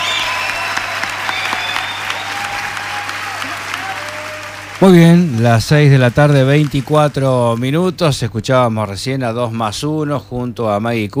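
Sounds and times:
loud applause: 0.0s - 7.8s
speech: 4.8s - 11.1s.

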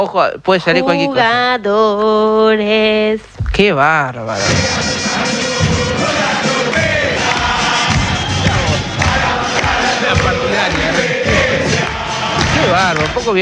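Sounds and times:
speech: 0.0s - 5.4s, 12.7s - 13.3s
football fans chanting in the stadium: 4.4s - 13.3s.

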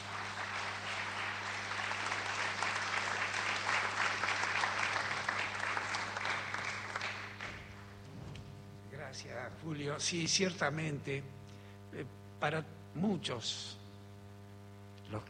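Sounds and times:
audience applause: 0.0s - 8.0s
speech: 9.2s - 13.8s.

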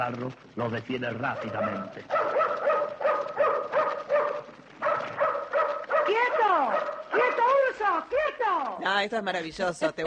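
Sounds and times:
speech: 0.0s - 2.5s, 7.1s - 10.0s
dog barking: 1.3s - 7.2s.

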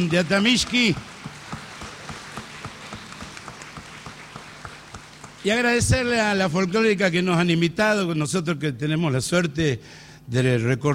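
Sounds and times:
speech: 0.0s - 1.1s, 5.4s - 10.9s
audience clapping in a steady rhythm: 0.0s - 6.9s
low hum: 0.0s - 10.9s.

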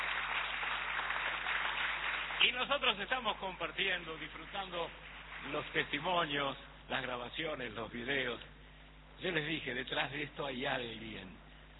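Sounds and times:
crowd applause: 0.0s - 2.8s, 4.2s - 6.1s
speech: 2.4s - 8.6s, 9.2s - 11.4s.

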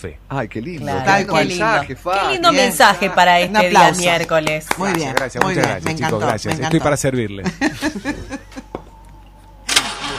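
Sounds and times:
speech: 0.0s - 8.6s
laughter: 7.4s - 8.8s
car engine starting: 9.6s - 10.1s.

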